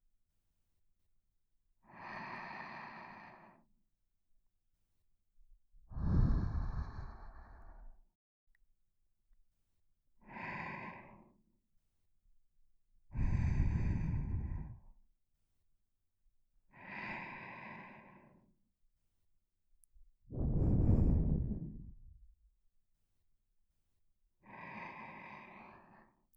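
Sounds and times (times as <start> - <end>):
person breathing in sleep: 1.9 - 3.7, 5.9 - 8.0, 10.2 - 11.4, 13.1 - 15.0, 16.7 - 18.5, 20.3 - 22.2, 24.4 - 26.2.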